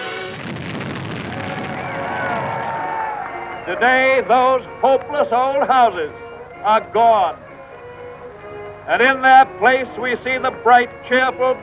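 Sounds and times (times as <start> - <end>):
demolition blast clearing old slum houses for a 1935 housing project: 0.0 - 3.1
speech: 3.7 - 7.4, 8.9 - 11.6.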